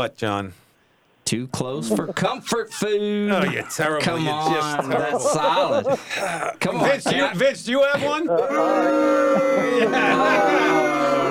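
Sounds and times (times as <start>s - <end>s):
speech: 0.0s - 0.6s, 1.3s - 11.3s
laughter: 1.7s - 11.3s
booing: 1.8s - 3.9s.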